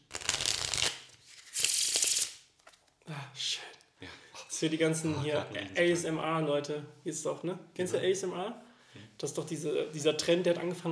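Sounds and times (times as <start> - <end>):
deck of playing cards riffle shuffled: 0.1 - 2.8
speech: 3.1 - 10.9.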